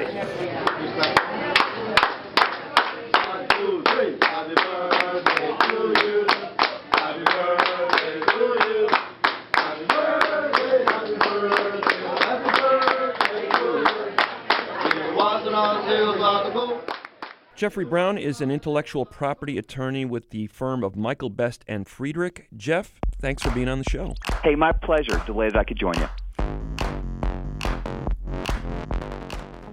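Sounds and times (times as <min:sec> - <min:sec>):
restaurant staff birthday clapping song: 0:00.6 - 0:17.4, 0:23.2 - 0:27.0, 0:27.6 - 0:29.7
speech: 0:17.6 - 0:26.2.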